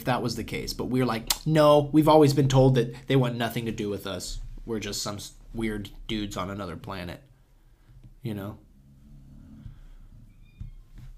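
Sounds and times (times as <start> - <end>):
speech: 0.0 - 7.3, 8.2 - 8.6
pet snoring: 8.8 - 10.3.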